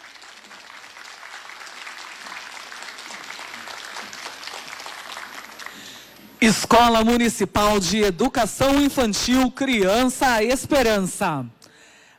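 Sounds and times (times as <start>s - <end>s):
audience applauding: 0.0s - 6.4s
speech: 6.4s - 11.6s.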